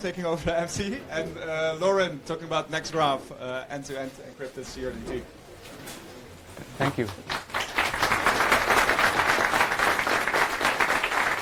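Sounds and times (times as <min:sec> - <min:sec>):
speech: 0:00.0 - 0:06.0, 0:06.8 - 0:07.4
audience applause: 0:07.0 - 0:11.3.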